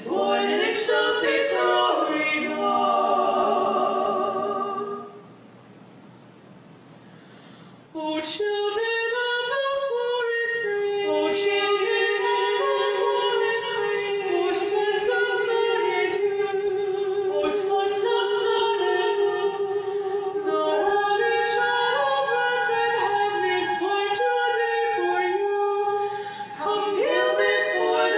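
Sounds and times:
three women singing a mellow a cappella Christmas carol with kulning: 0.0 - 5.3, 7.9 - 28.1.

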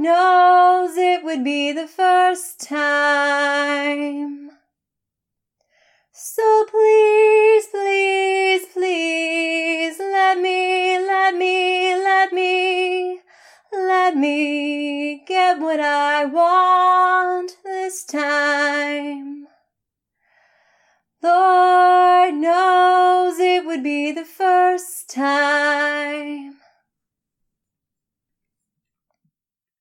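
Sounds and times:
woman singing a cappella: 0.0 - 4.7, 6.2 - 19.6, 21.2 - 26.8.

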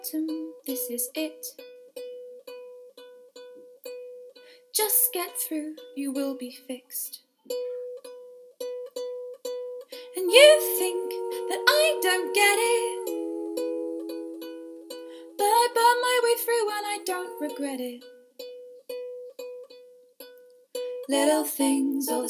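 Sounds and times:
ukulele: 0.0 - 22.2
person singing a cover: 10.0 - 18.1, 21.0 - 22.2.

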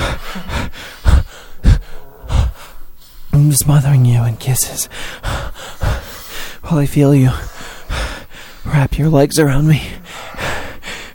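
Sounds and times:
person gasping for breath: 0.0 - 3.3, 4.6 - 6.7, 7.3 - 8.7, 9.8 - 11.1
speech: 0.4 - 0.9, 3.4 - 5.4, 6.7 - 7.5, 8.7 - 9.9.

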